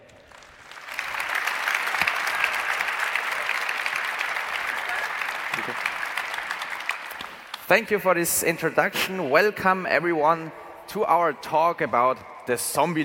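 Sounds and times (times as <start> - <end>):
audience applause: 0.0 - 7.6
speech: 7.7 - 13.0.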